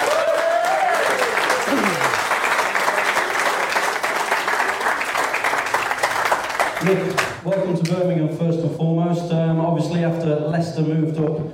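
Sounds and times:
speedway crowd clapping in Birmingham: 0.0 - 8.0
speech: 6.8 - 11.5.

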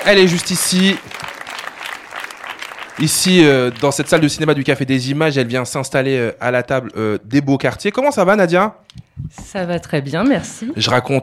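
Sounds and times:
speech: 0.0 - 1.1, 3.0 - 11.2
audience applause in a cinema: 0.0 - 5.0.

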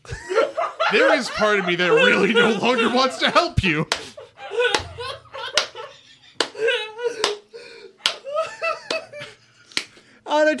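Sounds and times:
laughter: 0.0 - 9.8
speech: 0.9 - 4.1
slow clapping: 3.9 - 4.1, 4.7 - 10.1.

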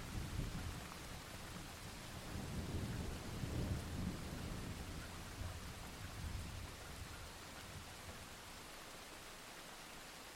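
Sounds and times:
summer thunderstorm: 0.0 - 7.9.

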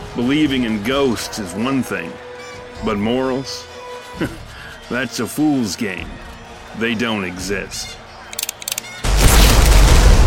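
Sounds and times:
speech: 0.2 - 2.2, 2.8 - 6.2, 6.8 - 8.0
gunshot: 9.1 - 10.2.

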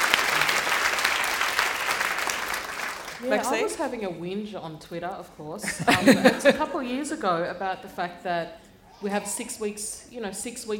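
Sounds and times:
audience applause: 0.0 - 3.6
speech: 3.2 - 10.7
laughter: 5.6 - 7.0.

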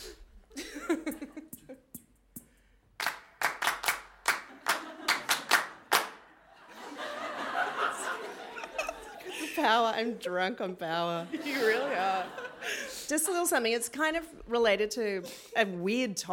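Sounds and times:
laughter: 0.5 - 1.7, 4.5 - 9.8, 11.0 - 13.1
audience clapping: 3.0 - 6.3
speech: 9.7 - 12.4, 13.1 - 16.3.

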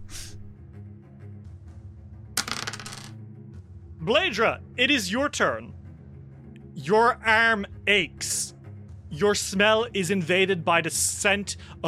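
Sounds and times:
dice clattering across a table: 2.4 - 3.2
speech: 4.0 - 5.8, 6.8 - 8.5, 9.1 - 11.8.

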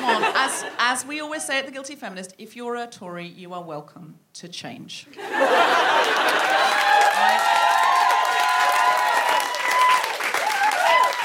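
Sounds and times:
laughter: 0.0 - 0.8, 5.2 - 7.8
speech: 0.5 - 7.6
crowd clapping: 5.7 - 11.2
whoops and cheering: 6.4 - 11.2.

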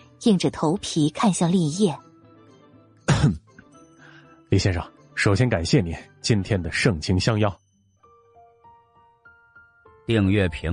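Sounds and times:
speech: 0.2 - 2.1, 3.2 - 3.4, 4.5 - 7.6, 10.1 - 10.7
throaty cough: 3.1 - 3.6.

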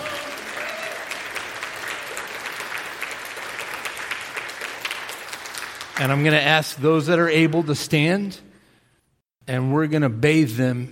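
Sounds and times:
audience applause: 0.0 - 6.5
speech: 6.0 - 8.5, 9.5 - 10.9.

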